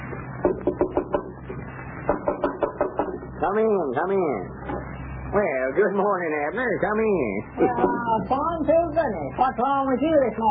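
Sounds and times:
knocking on a door: 0:00.4 - 0:01.4, 0:02.1 - 0:03.2
speech: 0:03.5 - 0:10.4.

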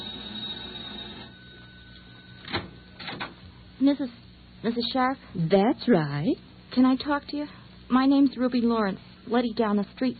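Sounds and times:
buzzing doorbell: 0:00.0 - 0:03.6
speech: 0:03.8 - 0:10.1.

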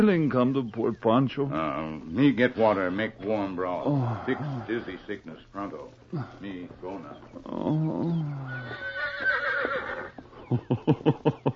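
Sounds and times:
speech: 0:00.0 - 0:09.8, 0:10.5 - 0:11.5
horse whinnying and nickering: 0:07.5 - 0:10.3
laughter: 0:10.3 - 0:11.5.

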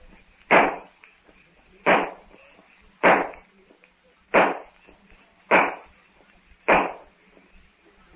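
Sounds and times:
gunshots fired to signal others: 0:00.5 - 0:00.9, 0:01.8 - 0:02.3, 0:03.0 - 0:03.4, 0:04.3 - 0:04.8, 0:05.5 - 0:05.9, 0:06.7 - 0:07.1.

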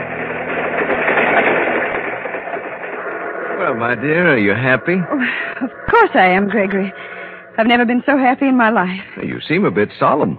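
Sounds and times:
train rumbling on rails: 0:00.0 - 0:10.3
speech: 0:03.7 - 0:10.3.

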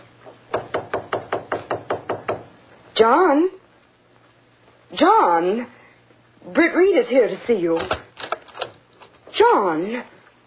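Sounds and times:
knocking on a study door: 0:00.5 - 0:02.5
speech: 0:03.0 - 0:03.6, 0:04.9 - 0:05.8, 0:06.5 - 0:08.0, 0:09.4 - 0:10.1.

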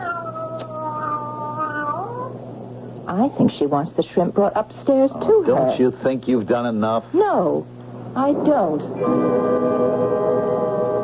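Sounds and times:
cat meowing: 0:00.0 - 0:02.4
speech: 0:03.1 - 0:09.9.

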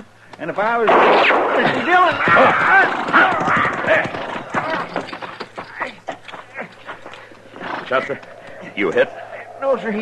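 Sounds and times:
speech: 0:00.4 - 0:04.2, 0:07.9 - 0:10.0
horse whinnying: 0:02.1 - 0:09.0.

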